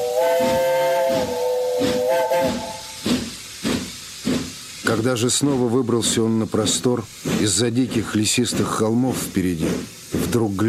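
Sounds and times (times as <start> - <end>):
steam locomotive whistle as train departs: 0.0 - 3.0
speech: 4.9 - 10.6.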